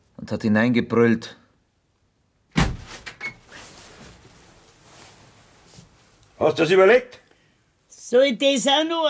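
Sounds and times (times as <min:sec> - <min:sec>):
speech: 0:00.3 - 0:01.4, 0:06.4 - 0:07.2, 0:08.1 - 0:09.0
bedroom door yanked open with a heavy bang: 0:02.5 - 0:03.4.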